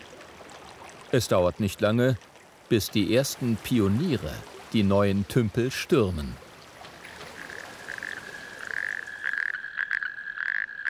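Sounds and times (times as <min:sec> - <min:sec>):
speech: 0:01.1 - 0:06.4
male natterjack toads mating call: 0:06.9 - 0:10.8.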